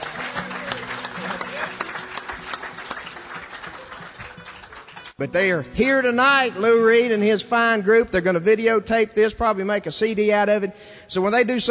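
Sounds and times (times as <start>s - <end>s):
audience applause: 0.0s - 5.2s
speech: 5.2s - 11.7s.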